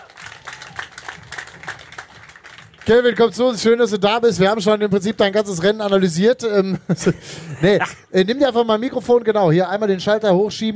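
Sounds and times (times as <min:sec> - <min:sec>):
audience clapping for a racing driver at an event: 0:00.0 - 0:03.8
speech: 0:02.9 - 0:10.7.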